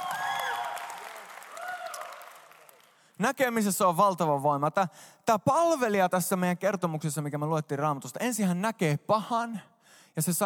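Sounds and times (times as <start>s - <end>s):
small round of applause: 0.0s - 3.2s
speech: 3.2s - 10.4s.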